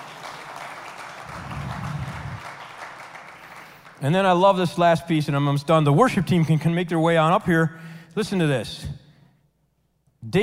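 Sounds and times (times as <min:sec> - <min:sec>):
large crowd applause: 0:00.0 - 0:04.1
speech: 0:04.0 - 0:09.0, 0:10.2 - 0:10.4.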